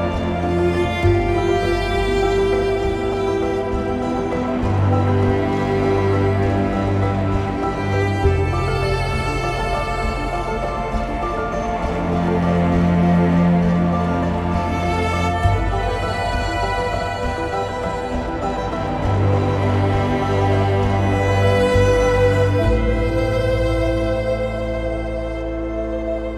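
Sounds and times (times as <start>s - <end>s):
mysterious cinematic neo-classical piece: 0.0s - 26.3s.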